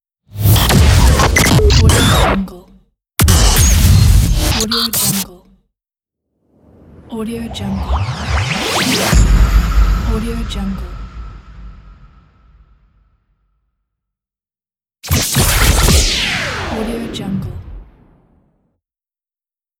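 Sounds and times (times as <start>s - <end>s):
radio imaging sound effects: 0.4s - 2.4s, 3.2s - 5.2s, 6.6s - 12.2s, 15.1s - 17.5s.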